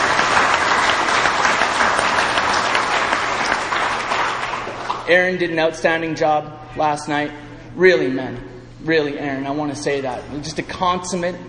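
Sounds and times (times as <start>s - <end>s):
audience applause: 0.0s - 5.0s
speech: 5.1s - 11.4s.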